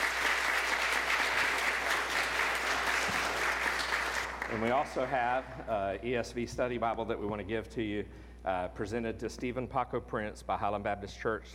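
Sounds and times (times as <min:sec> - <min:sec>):
congregation applauding at a deacon ordination service, Highland Baptist Church, Tullahoma, Tennessee: 0:00.0 - 0:05.7
speech: 0:04.5 - 0:11.5.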